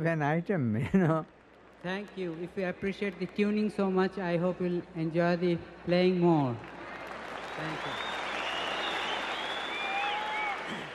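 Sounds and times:
speech: 0.0s - 6.8s, 7.6s - 8.1s
concert audience applauding: 1.4s - 4.5s, 6.0s - 10.9s.

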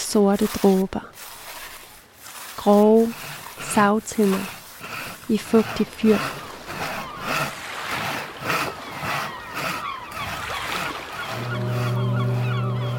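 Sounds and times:
small cargo ship docking: 0.0s - 12.9s
speech: 0.1s - 1.4s, 2.6s - 4.6s, 5.3s - 6.4s.

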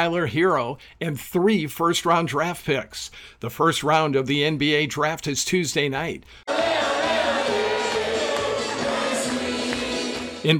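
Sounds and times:
speech: 0.0s - 6.5s
football fans cheering in Buenos Aires for Lionel Messi: 6.5s - 10.5s.

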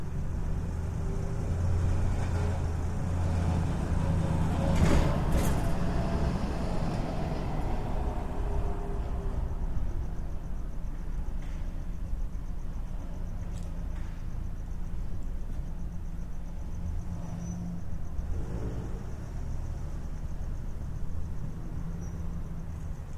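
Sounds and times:
light city traffic at Lexington and Seward: 0.0s - 23.1s.

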